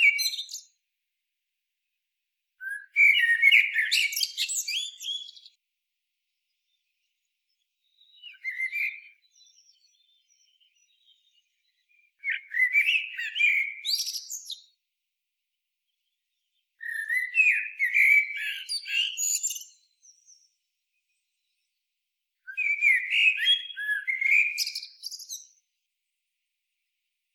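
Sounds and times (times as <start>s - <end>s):
Eurasian blackbird singing: 0.0s - 0.8s, 2.6s - 5.6s, 7.8s - 14.8s, 16.8s - 20.6s, 22.5s - 25.6s.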